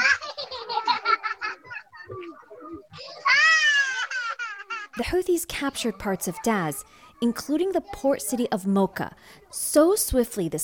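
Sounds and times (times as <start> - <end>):
laughter: 0.0 - 5.0
children's high-pitched voices at a displacement camp: 1.5 - 8.6
young child wailing: 2.1 - 4.5
speech: 5.0 - 10.6.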